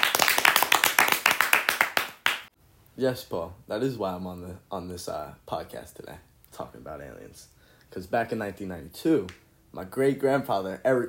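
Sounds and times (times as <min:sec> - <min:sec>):
round of applause: 0:00.0 - 0:02.6
speech: 0:03.0 - 0:11.0.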